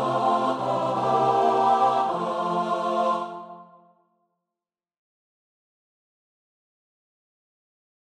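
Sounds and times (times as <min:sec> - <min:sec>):
choir singing: 0:00.0 - 0:04.0.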